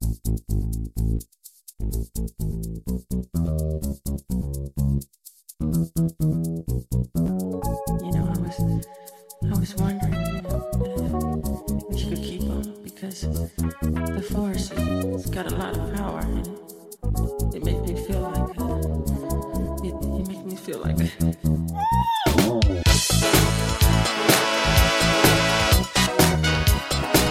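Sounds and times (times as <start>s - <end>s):
funk music: 0.0s - 27.3s.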